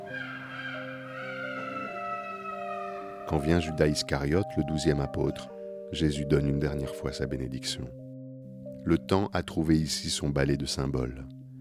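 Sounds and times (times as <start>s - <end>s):
mechanical clockwork rooster automaton crowing: 0.0s - 3.2s
speech: 3.3s - 8.0s, 8.8s - 11.4s.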